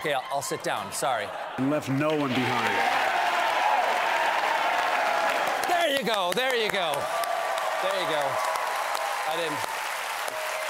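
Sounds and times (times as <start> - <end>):
speech: 0.0 - 3.2, 6.0 - 7.2, 7.8 - 8.5, 9.3 - 9.8
audience applause: 1.5 - 10.6.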